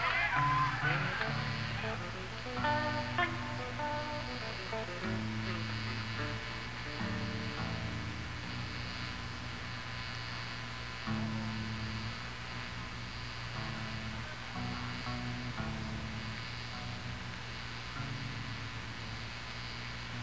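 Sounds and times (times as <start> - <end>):
laughter: 0.0 - 7.0
amplifier stacks humming and buzzing: 0.0 - 20.2.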